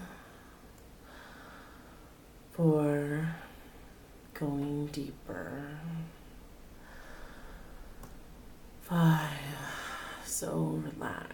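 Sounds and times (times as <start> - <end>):
deep breathing: 0.0 - 2.3, 6.0 - 8.1, 9.6 - 10.3
speech: 2.6 - 3.4, 4.4 - 6.2, 10.4 - 11.3.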